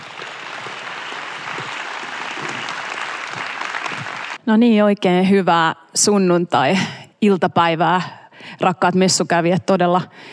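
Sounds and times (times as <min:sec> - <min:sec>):
sustained audience applause of many hands clapping: 0:00.0 - 0:04.4
speech: 0:04.5 - 0:10.3.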